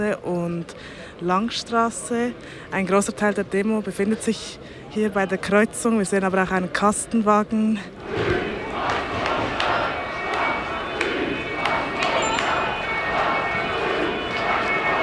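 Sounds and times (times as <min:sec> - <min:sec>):
speech: 0:00.0 - 0:08.4
large protest crowd booing police: 0:08.0 - 0:15.0
brief high whistle: 0:09.9 - 0:15.0.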